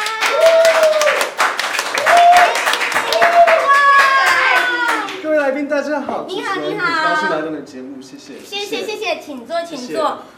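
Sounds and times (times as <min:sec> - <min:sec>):
audience applause welcoming a guest: 0:00.0 - 0:05.4
speech: 0:06.2 - 0:10.3.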